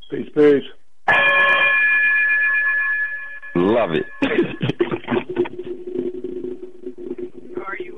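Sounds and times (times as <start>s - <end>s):
speech: 0.1s - 1.2s, 3.6s - 6.1s
chime ringing: 1.1s - 4.2s
laughter: 4.2s - 5.7s.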